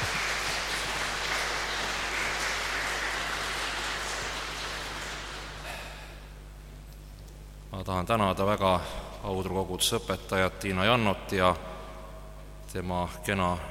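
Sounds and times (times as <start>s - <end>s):
audience applause: 0.0s - 6.0s
speech: 7.8s - 11.7s, 12.7s - 13.6s.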